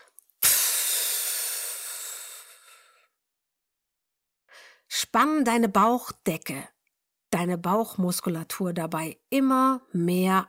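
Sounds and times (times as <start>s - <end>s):
forceful audible exhalation: 0.4s - 3.1s
speech: 5.1s - 6.7s, 7.3s - 10.4s.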